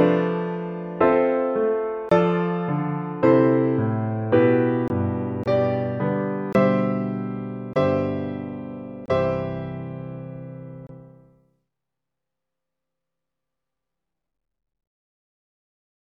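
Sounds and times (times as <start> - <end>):
piano piece: 0.0 - 11.4.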